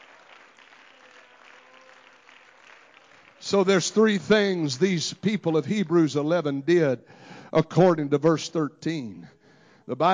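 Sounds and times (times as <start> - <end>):
audience clapping hands: 0.0 - 5.4
speech: 3.5 - 10.1.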